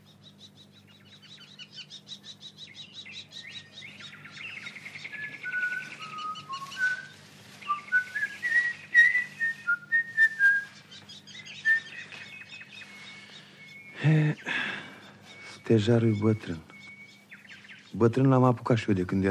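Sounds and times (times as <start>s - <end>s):
person whistling: 7.8s - 10.6s
speech: 14.1s - 14.5s, 15.7s - 16.7s, 18.0s - 19.2s.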